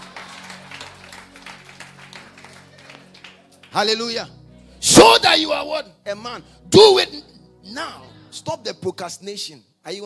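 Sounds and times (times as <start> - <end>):
audience clapping hands: 0.0 - 4.0
speech: 3.7 - 10.0.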